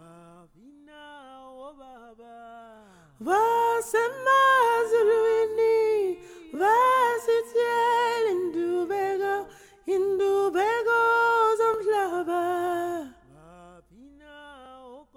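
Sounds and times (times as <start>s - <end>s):
soprano singing a song: 3.2s - 13.3s.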